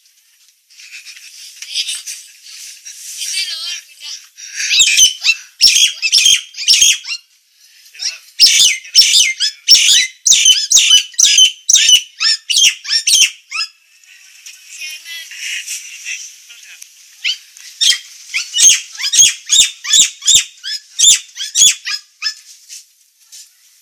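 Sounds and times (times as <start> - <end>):
Nias hill myna calling: 3.3 - 7.2, 8.0 - 13.8, 17.2 - 22.4.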